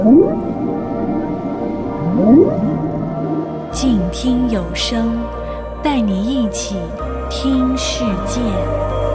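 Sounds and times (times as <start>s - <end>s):
whale vocalization: 0.0s - 3.8s
speech: 3.8s - 9.0s.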